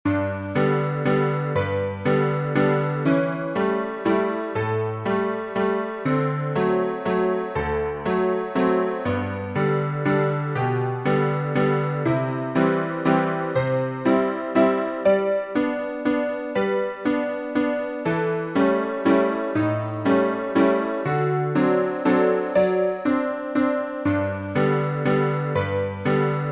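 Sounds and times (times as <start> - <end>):
piano: 0.0 - 26.5.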